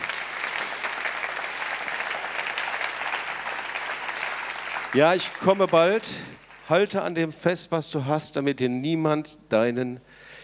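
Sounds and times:
audience applause: 0:00.0 - 0:06.9
speech: 0:04.9 - 0:10.3.

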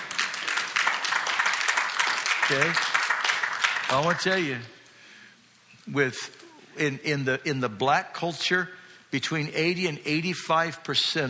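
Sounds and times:
audience clapping: 0:00.0 - 0:04.7
speech: 0:02.5 - 0:02.9, 0:03.9 - 0:04.8, 0:05.9 - 0:11.2.

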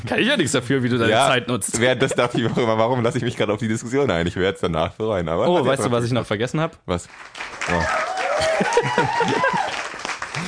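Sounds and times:
speech: 0:00.0 - 0:09.8
artificial applause sound effect: 0:07.1 - 0:10.4
laughter: 0:08.3 - 0:09.8.

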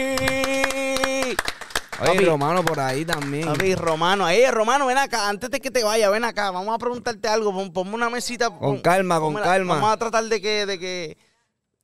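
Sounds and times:
applause: 0:00.0 - 0:04.6
speech: 0:02.0 - 0:11.3.

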